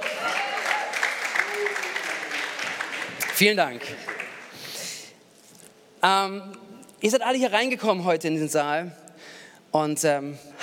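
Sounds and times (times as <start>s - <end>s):
audience applause: 0.0s - 4.6s
speech: 3.4s - 4.1s, 6.0s - 9.0s, 9.7s - 10.6s.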